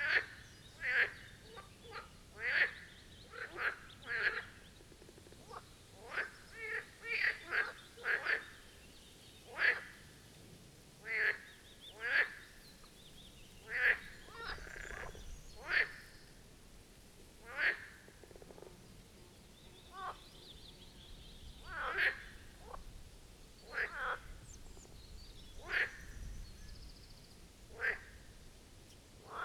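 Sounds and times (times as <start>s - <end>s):
marsh frogs calling together: 0.0s - 8.8s, 9.5s - 10.1s, 11.0s - 13.0s, 13.6s - 16.4s, 17.4s - 18.9s, 19.8s - 20.2s, 21.6s - 22.9s, 23.6s - 26.9s, 27.7s - 28.4s, 29.2s - 29.4s
soft hiss: 0.6s - 29.4s.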